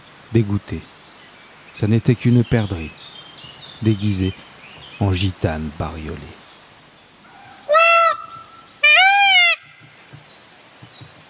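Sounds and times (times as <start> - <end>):
speech: 0.3 - 1.0, 1.8 - 3.0, 3.8 - 6.4
peafowl giving loud nasal trumpeting wails: 7.2 - 10.0.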